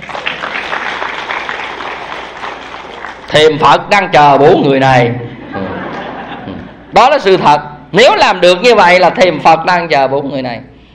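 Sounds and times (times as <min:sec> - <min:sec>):
audience applause in a lecture hall: 0:00.0 - 0:03.4
speech: 0:03.3 - 0:05.2, 0:07.0 - 0:10.7
laughter: 0:05.1 - 0:07.0.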